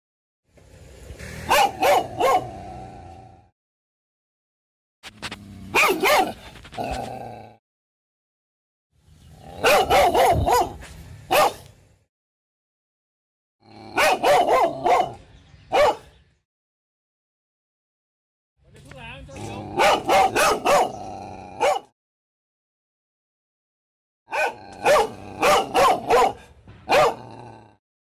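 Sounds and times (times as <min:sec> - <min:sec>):
dog barking: 0:01.5 - 0:02.6, 0:05.7 - 0:06.4, 0:09.6 - 0:11.7, 0:13.9 - 0:16.1, 0:19.8 - 0:21.0, 0:21.6 - 0:21.9, 0:24.3 - 0:27.3
speech: 0:06.8 - 0:07.3.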